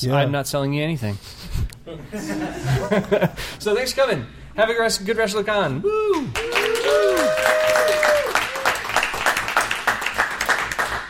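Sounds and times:
speech: 0.0 - 7.6
laughter: 1.9 - 3.6
audience clapping: 6.3 - 11.0.

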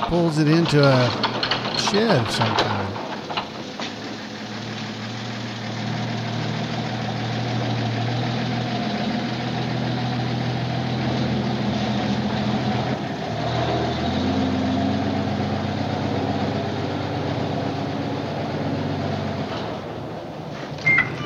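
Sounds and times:
heavy tow truck engine idling: 0.0 - 21.2
speech: 0.1 - 2.7.

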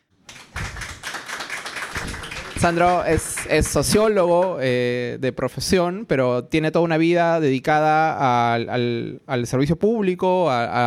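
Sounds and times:
audience applause: 0.3 - 4.0
speech: 2.6 - 10.8.

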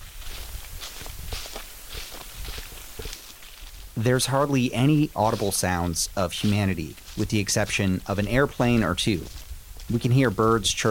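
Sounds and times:
footsteps crunching leaves on gravel path: 0.0 - 10.8
speech: 4.0 - 10.8.

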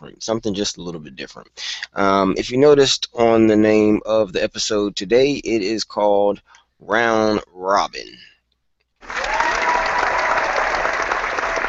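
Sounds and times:
speech: 0.1 - 8.3
audience clapping: 9.0 - 11.6.

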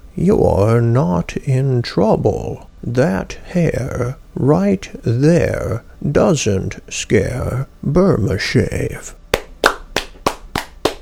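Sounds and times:
speech: 0.2 - 9.2
hands clapping: 9.3 - 11.0.

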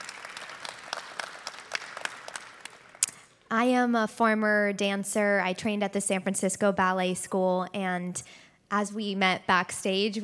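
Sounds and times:
audience applause: 0.0 - 3.1
speech: 3.5 - 10.2.

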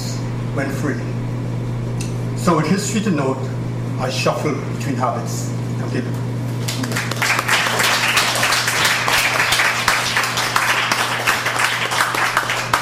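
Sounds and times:
low electrical hum: 0.0 - 12.7
speech: 0.6 - 1.2, 2.4 - 6.3
audience applause: 6.6 - 12.7.

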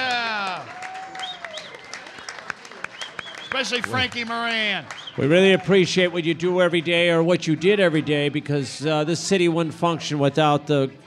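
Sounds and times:
audience applause for Chicago firefighters, police officers and teachers: 0.0 - 8.1
speech: 3.5 - 11.0.

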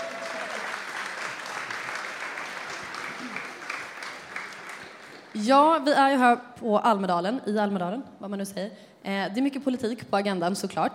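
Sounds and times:
audience applause: 0.0 - 5.4
speech: 5.4 - 10.9.

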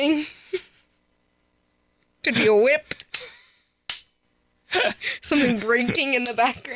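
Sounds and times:
speech: 0.0 - 0.4, 5.3 - 6.7
isolated hand clap: 2.9 - 4.2, 6.2 - 6.7.

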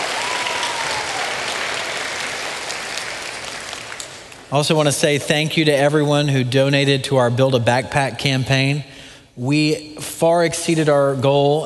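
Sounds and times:
round of applause: 0.0 - 4.5
speech: 4.5 - 11.6.

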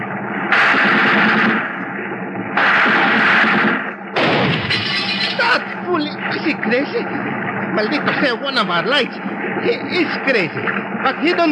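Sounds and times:
low rumble: 0.0 - 11.5
gunfire volleys: 0.5 - 5.4
laughter: 4.6 - 7.0
speech: 6.6 - 11.5.

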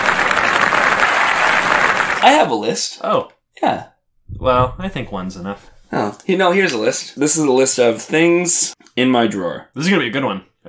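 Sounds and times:
applause sound effect: 0.0 - 2.2
speech: 2.3 - 10.6.

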